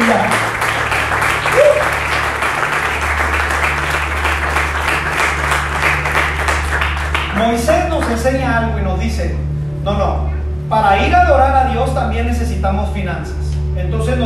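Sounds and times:
audience applauding: 0.0 - 8.2
low hum: 0.0 - 14.2
speech: 8.3 - 14.2.

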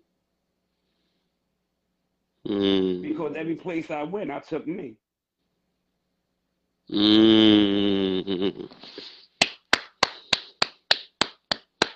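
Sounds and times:
speech: 2.5 - 5.0, 6.9 - 7.6
hand clapping: 9.4 - 11.9.

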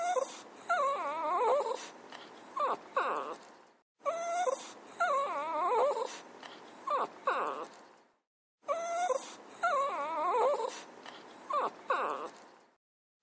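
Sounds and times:
dog whining: 0.0 - 7.9, 8.6 - 12.6.

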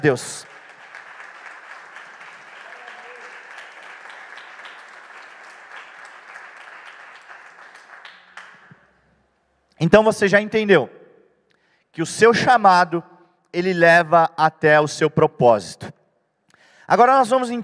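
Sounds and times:
speech: 0.0 - 0.5, 9.8 - 11.0, 11.9 - 16.0, 16.9 - 17.6
audience applauding: 0.0 - 9.0.

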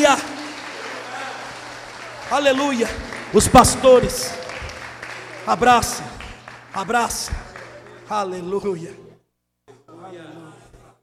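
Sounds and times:
crowd applauding: 0.0 - 8.7
low constant hum: 0.0 - 11.0
speech: 2.3 - 4.4, 5.5 - 6.2, 6.8 - 7.5, 8.1 - 9.0.

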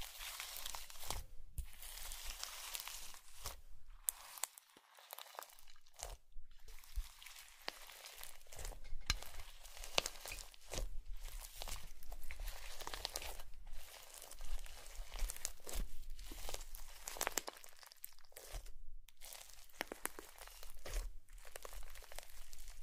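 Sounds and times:
slime squeezed by hand: 0.0 - 22.8.

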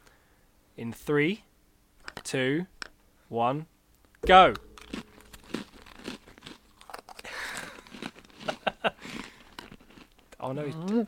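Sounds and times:
speech: 0.8 - 1.5, 2.3 - 4.7, 10.5 - 11.0
chewing crunchy snacks: 5.5 - 11.0.

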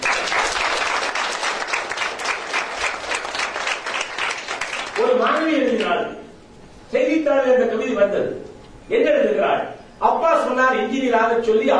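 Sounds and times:
audience applause at a Tamil-language speech: 0.0 - 5.2
speech: 5.0 - 6.2, 6.9 - 11.7.

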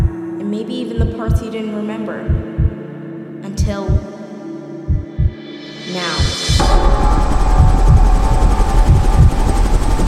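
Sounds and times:
speech: 0.6 - 2.7, 3.6 - 4.1
helicopter flying: 6.6 - 10.0.

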